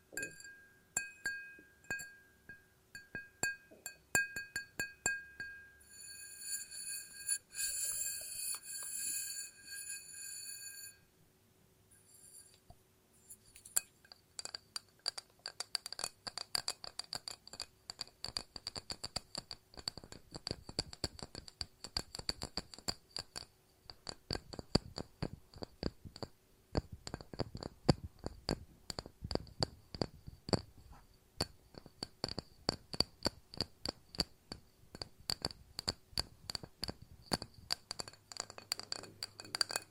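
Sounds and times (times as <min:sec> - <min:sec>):
glass tapping: 0:00.1 - 0:11.0, 0:13.7 - 0:39.8
glass ringing tone: 0:00.1 - 0:11.1.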